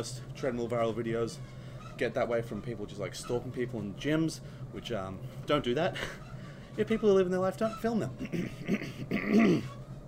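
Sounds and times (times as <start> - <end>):
speech: 0.0 - 9.8
person coughing: 8.2 - 9.7.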